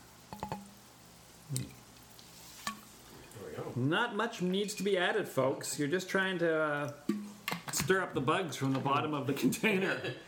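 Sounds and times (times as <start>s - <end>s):
faint drip-like taps of soda water into scotch: 0.3s - 0.7s
speech: 1.5s - 1.8s, 3.7s - 7.1s, 7.8s - 10.2s.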